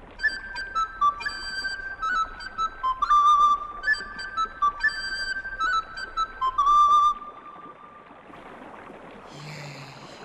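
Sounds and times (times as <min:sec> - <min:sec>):
willow whistle being blown in a simple repeating tune: 0:00.0 - 0:08.1.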